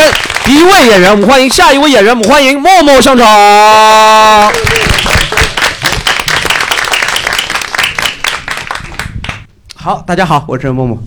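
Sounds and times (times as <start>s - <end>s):
audience applause and clapping: 0.0s - 1.5s, 4.3s - 9.5s
speech: 0.5s - 5.3s, 9.8s - 11.0s.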